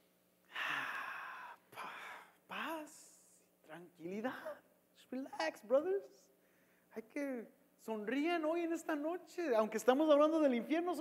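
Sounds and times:
deep breaths during a guided breathing moment in a sermon: 0.5s - 2.4s, 6.4s - 6.9s
speech: 3.8s - 6.3s, 6.9s - 10.9s.

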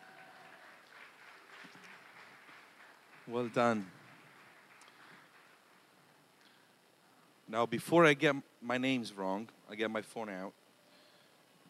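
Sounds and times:
audience applauding: 0.0s - 6.0s
speech: 3.3s - 4.0s, 7.5s - 10.6s.

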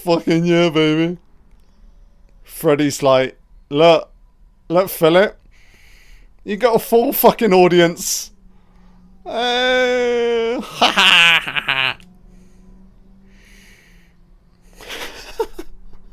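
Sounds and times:
speech: 0.0s - 1.2s, 2.5s - 4.1s, 4.7s - 5.4s, 6.4s - 8.3s, 9.2s - 11.9s
low hum: 0.0s - 16.1s
over-the-top screaming in a horror film: 9.2s - 12.0s
laughter: 10.6s - 12.0s, 14.8s - 15.9s.

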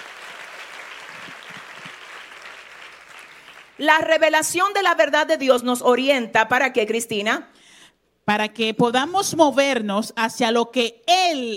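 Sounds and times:
audience applause: 0.0s - 3.8s
speech: 3.8s - 7.7s, 8.3s - 11.5s.

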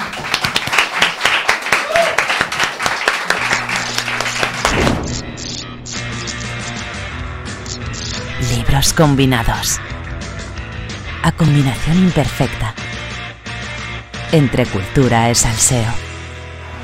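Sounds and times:
audience applause: 0.0s - 5.1s
music bed: 2.3s - 16.8s
speech: 8.8s - 9.9s, 11.2s - 12.8s, 14.3s - 16.0s.

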